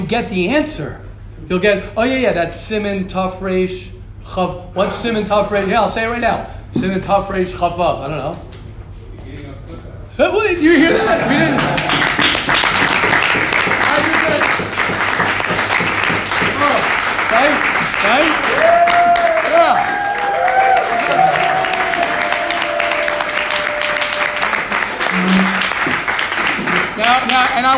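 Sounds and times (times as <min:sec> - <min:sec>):
speech: 0:00.0 - 0:08.5, 0:10.2 - 0:12.1, 0:27.4 - 0:27.7
laughter: 0:10.6 - 0:12.5
audience applause: 0:11.2 - 0:27.7
voices shouting and whooping: 0:18.5 - 0:24.8.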